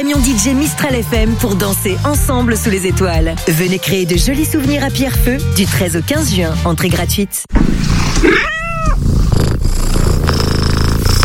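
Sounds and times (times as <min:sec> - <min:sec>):
speech: 0:00.0 - 0:08.4
cat purring: 0:07.8 - 0:11.2
cat meowing: 0:08.2 - 0:09.0.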